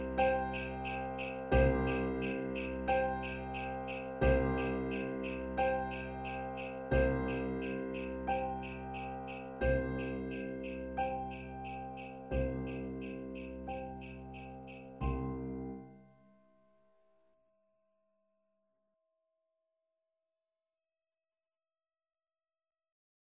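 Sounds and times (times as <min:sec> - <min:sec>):
Christmas song: 0:00.0 - 0:16.4.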